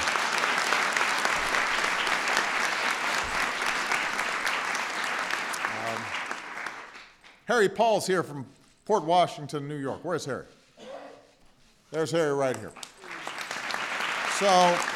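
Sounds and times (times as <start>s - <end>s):
audience applause: 0.0s - 7.4s, 12.8s - 14.9s
speech: 7.5s - 10.6s, 11.9s - 12.8s, 14.4s - 14.9s.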